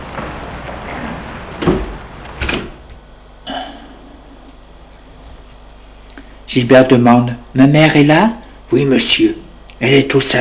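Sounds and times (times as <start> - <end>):
servant closing a door: 0.0 - 3.0
speech: 6.5 - 10.3.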